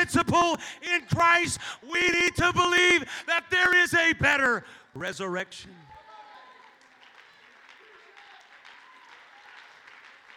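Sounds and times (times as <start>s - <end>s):
speech: 0.1s - 5.9s
audience clapping hands: 5.8s - 10.3s.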